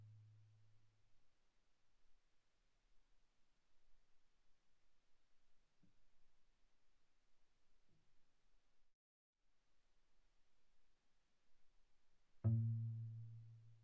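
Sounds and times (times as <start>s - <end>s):
viola pizzicato sul G pianissimo: 12.5s - 13.6s.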